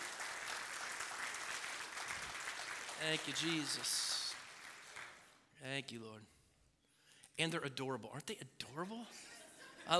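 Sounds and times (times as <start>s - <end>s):
church congregation applauding to welcome guests: 0.0s - 5.4s
speech: 3.0s - 4.2s, 5.6s - 6.4s, 7.4s - 9.9s.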